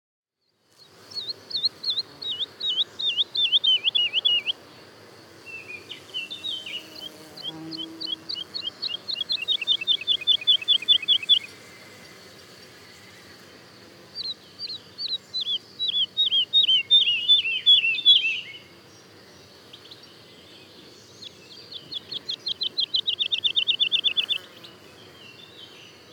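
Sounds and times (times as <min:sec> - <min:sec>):
woodlark singing: 0:01.2 - 0:04.6, 0:05.5 - 0:11.5, 0:14.2 - 0:18.7, 0:21.2 - 0:24.8.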